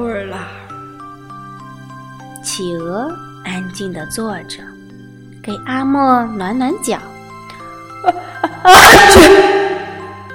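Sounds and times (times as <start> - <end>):
speech: 2.4 - 4.7, 5.5 - 7.1, 8.0 - 9.5
sneeze: 8.7 - 10.0.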